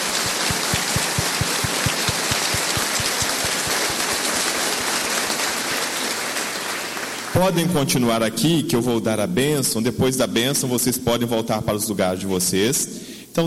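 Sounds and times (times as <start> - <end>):
audience giving loud round of applause: 0.0 - 7.4
speech: 7.4 - 13.4.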